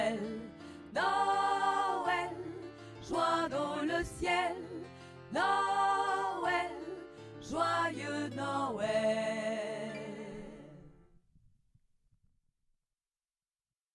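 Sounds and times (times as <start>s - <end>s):
alto voices singing a Christmas carol: 0.0s - 11.0s.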